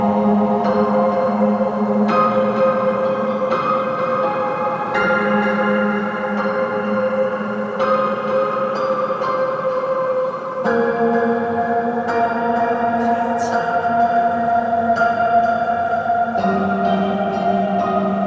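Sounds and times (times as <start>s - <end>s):
prepared piano effects: 0.0s - 18.2s.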